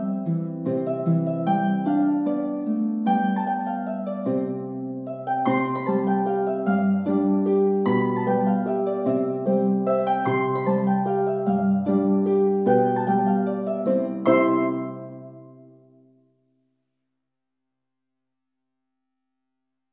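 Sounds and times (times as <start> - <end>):
2 harps playing salsa: 0.0 - 15.7.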